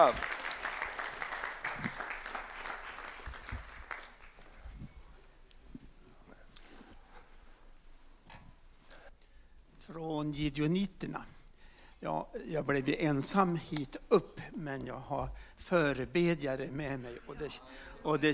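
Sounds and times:
speech: 0.0 - 0.4, 10.4 - 11.4, 12.0 - 18.3
audience applause: 0.0 - 4.8.

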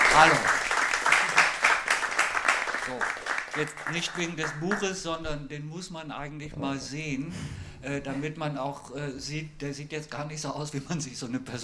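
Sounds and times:
audience applause: 0.0 - 4.9
speech: 0.2 - 0.6, 2.9 - 11.6.

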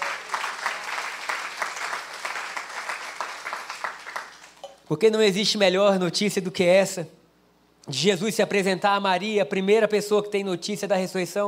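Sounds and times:
audience applauding: 0.0 - 4.6
speech: 4.9 - 7.2, 7.9 - 11.4.

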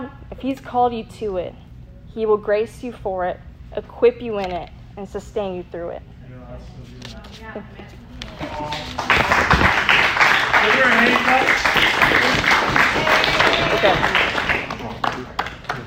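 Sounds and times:
speech: 0.4 - 12.5, 13.6 - 14.3
audience applause: 8.4 - 15.8.

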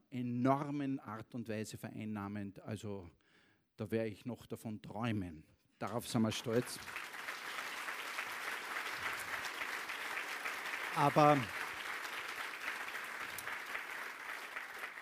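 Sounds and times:
speech: 0.1 - 3.2, 3.8 - 7.2, 11.0 - 11.6
audience applause: 5.9 - 14.9.

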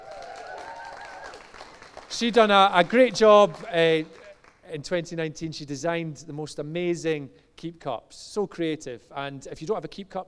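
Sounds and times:
audience cheering and applause: 0.0 - 4.6
speech: 2.1 - 10.2.

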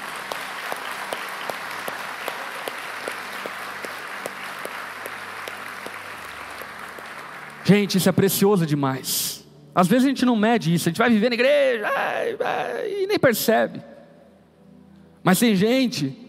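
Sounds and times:
church audience applause: 0.0 - 7.9
speech: 7.7 - 13.9, 15.2 - 16.2.

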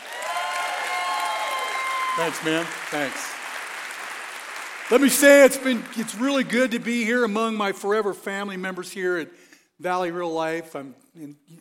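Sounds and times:
large crowd clapping: 0.0 - 7.3
speech: 2.2 - 3.4, 4.9 - 11.5.

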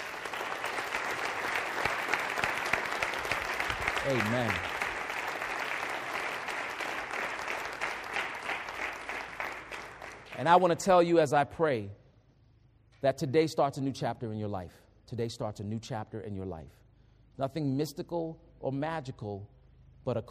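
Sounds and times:
audience clapping: 0.0 - 10.9
speech: 4.0 - 4.7, 10.4 - 12.0, 13.0 - 16.8, 17.4 - 20.2.

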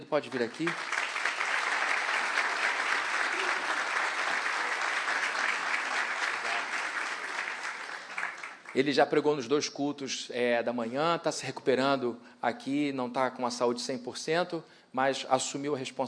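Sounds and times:
speech: 0.1 - 1.0, 8.8 - 16.0
warm audience applause: 0.2 - 8.8.

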